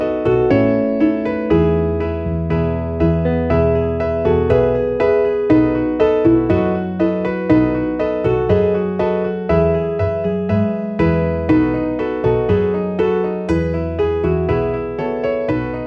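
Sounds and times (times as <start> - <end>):
MIDI piano: 0.0 - 15.8.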